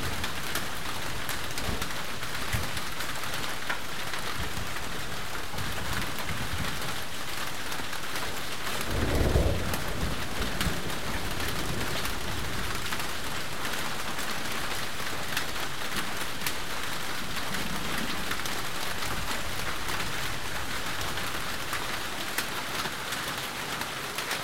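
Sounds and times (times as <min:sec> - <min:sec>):
rain: 0:00.0 - 0:24.4
thunder: 0:08.8 - 0:13.0.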